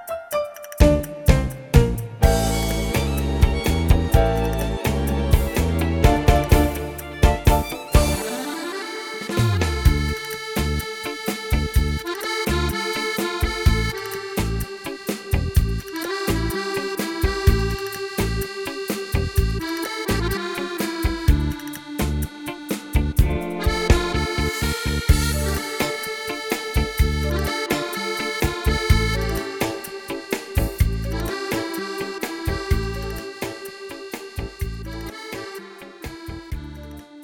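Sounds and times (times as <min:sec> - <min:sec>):
tango music: 0:00.4 - 0:37.2.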